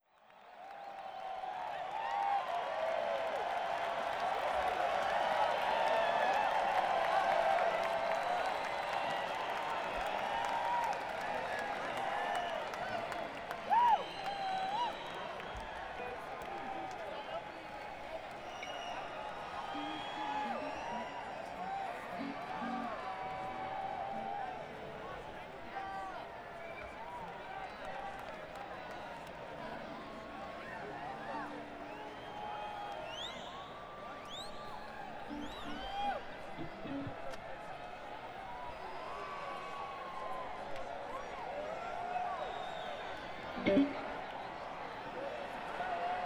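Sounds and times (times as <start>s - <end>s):
crowd: 0.0s - 46.2s.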